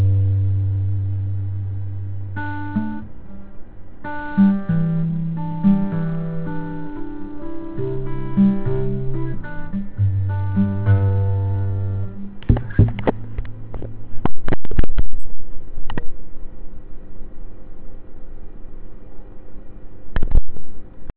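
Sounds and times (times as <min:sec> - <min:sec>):
guitar playing: 0:00.0 - 0:15.2.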